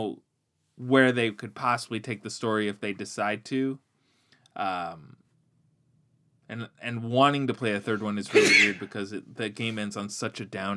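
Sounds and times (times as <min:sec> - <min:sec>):
speech: 0:00.0 - 0:00.2, 0:00.8 - 0:03.8, 0:04.6 - 0:05.2, 0:06.5 - 0:10.7
sneeze: 0:08.3 - 0:09.0.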